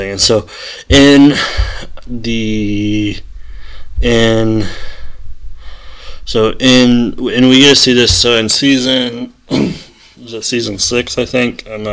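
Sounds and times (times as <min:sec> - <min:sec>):
speech: 0:00.0 - 0:03.3, 0:04.0 - 0:04.8, 0:06.3 - 0:11.9
throat clearing: 0:09.5 - 0:10.0.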